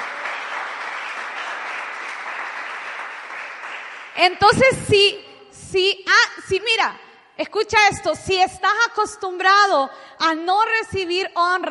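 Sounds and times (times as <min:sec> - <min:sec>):
audience applauding: 0:00.0 - 0:04.2
speech: 0:04.2 - 0:11.6.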